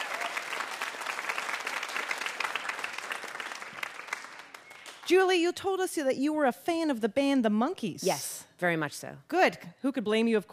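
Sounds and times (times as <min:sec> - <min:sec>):
audience applause: 0:00.0 - 0:05.1
speech: 0:05.1 - 0:10.5.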